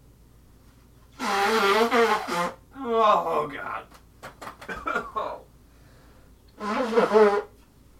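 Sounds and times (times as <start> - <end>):
person blowing nose loudly: 1.1 - 2.7, 6.6 - 7.6
person exclaiming: 2.8 - 3.9.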